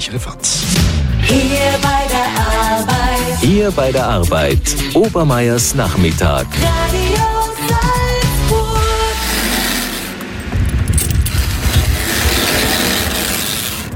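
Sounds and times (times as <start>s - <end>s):
speech: 0.0s - 2.5s, 3.4s - 8.0s
cable car maintenance work: 8.2s - 13.9s.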